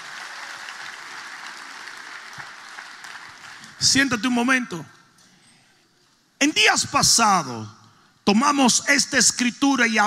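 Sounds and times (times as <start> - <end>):
audience applause: 0.0 - 3.7
speech: 3.8 - 5.0, 6.4 - 10.0.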